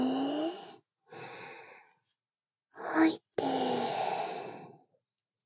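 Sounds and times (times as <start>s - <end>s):
person breathing: 0.2s - 1.9s, 3.4s - 4.8s.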